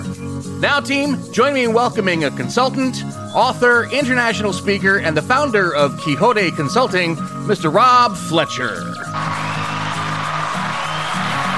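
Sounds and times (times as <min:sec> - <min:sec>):
speech: 0:00.6 - 0:09.3
small group cheering and whooping: 0:09.1 - 0:11.5
small group clapping: 0:09.1 - 0:11.5.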